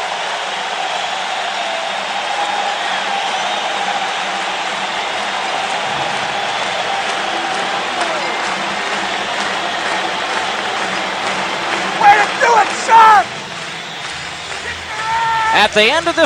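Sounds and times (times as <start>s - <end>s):
arena crowd applause and cheering: 0.0s - 16.2s
sharp whistles and shouts: 0.8s - 8.5s, 12.0s - 16.2s
speech: 15.7s - 16.2s.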